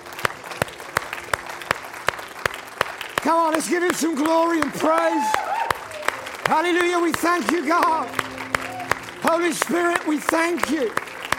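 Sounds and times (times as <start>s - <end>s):
audience clapping: 0.0s - 11.3s
speech: 3.2s - 5.7s, 6.5s - 8.3s, 9.2s - 11.0s
audience shouting: 4.8s - 6.1s.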